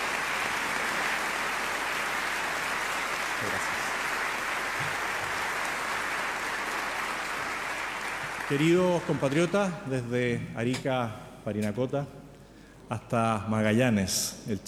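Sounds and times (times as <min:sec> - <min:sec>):
audience applause: 0:00.0 - 0:10.1
speech: 0:08.5 - 0:12.2, 0:12.9 - 0:14.6.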